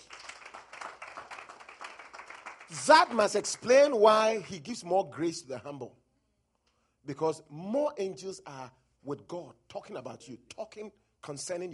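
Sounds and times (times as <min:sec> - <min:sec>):
crowd clapping at a religious gathering: 0:00.0 - 0:04.7
speech: 0:02.7 - 0:06.0, 0:07.1 - 0:11.7.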